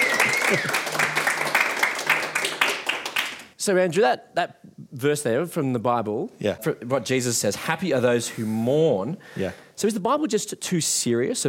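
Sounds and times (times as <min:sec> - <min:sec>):
laughter: 0:00.0 - 0:01.4
round of applause: 0:00.0 - 0:03.5
speech: 0:00.5 - 0:00.9, 0:03.6 - 0:11.4.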